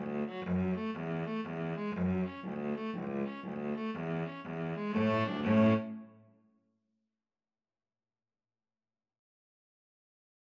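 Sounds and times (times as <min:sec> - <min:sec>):
string trio playing an Irish jig medley: 0:00.0 - 0:06.0.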